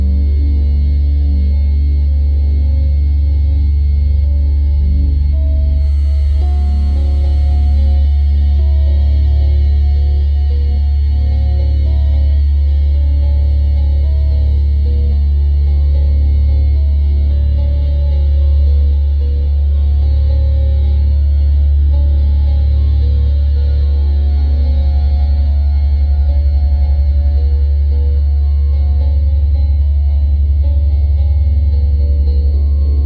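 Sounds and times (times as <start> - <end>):
meditation music with 40 Hz theta brainwave tones: 0.0 - 33.0.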